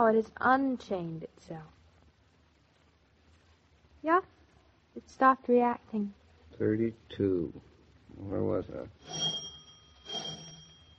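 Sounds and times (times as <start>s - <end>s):
speech: 0.0s - 1.8s, 4.0s - 4.3s, 5.0s - 9.4s
doorbell ringing: 9.0s - 10.9s.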